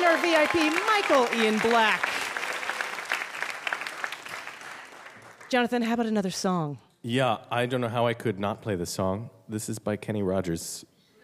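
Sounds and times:
studio audience applause at a live quiz show: 0:00.0 - 0:05.5
speech: 0:00.4 - 0:02.2, 0:05.5 - 0:10.9.

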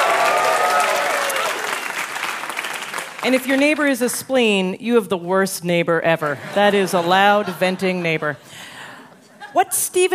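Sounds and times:
audience clapping hands: 0:00.0 - 0:03.9
speech: 0:03.2 - 0:08.7, 0:09.5 - 0:10.1.

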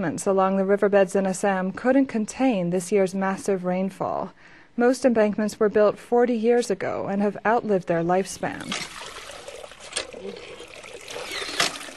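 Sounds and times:
speech: 0:00.0 - 0:09.2
water pouring into a bucket: 0:08.6 - 0:11.9.

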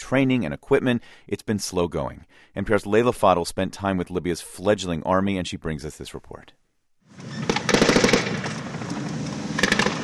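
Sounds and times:
speech: 0:00.0 - 0:06.6
gunfire in a battle between two families in Libya: 0:07.4 - 0:08.8, 0:09.6 - 0:10.0.

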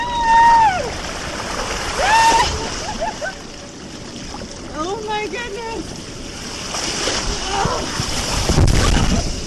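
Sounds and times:
sliding down water slide: 0:00.0 - 0:09.4
splashing into a pool of icy cold water: 0:00.3 - 0:04.7, 0:06.4 - 0:09.4.

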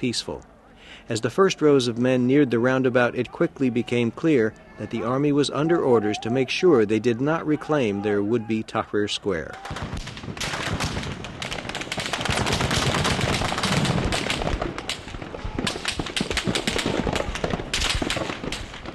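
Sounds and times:
speech: 0:00.0 - 0:10.6
live ammunition gunfire: 0:09.6 - 0:18.9.

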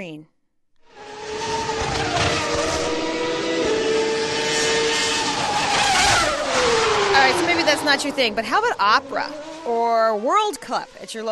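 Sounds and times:
speech: 0:00.0 - 0:00.3, 0:07.3 - 0:11.3
Formula One race car engines roaring: 0:00.8 - 0:11.3.

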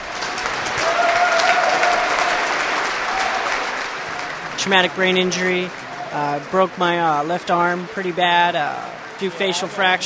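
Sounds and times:
thundering applause of hundreds of men and women in uniform: 0:00.0 - 0:06.2
speech: 0:04.6 - 0:10.0.

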